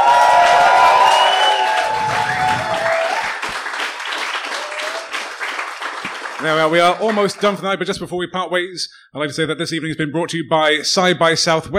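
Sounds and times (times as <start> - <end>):
crowd applauding: 0.0 - 7.6
whistles: 1.0 - 3.0
speech: 6.4 - 11.7.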